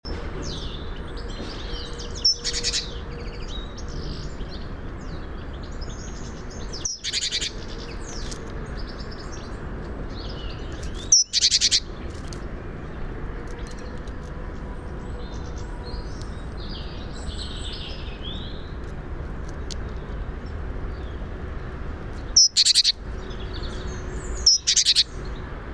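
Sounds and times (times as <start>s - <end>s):
faint twittering from other birds: 0.1s - 25.7s
great tit churring calls: 6.7s - 8.0s, 10.9s - 11.9s, 22.3s - 23.0s, 24.2s - 25.2s.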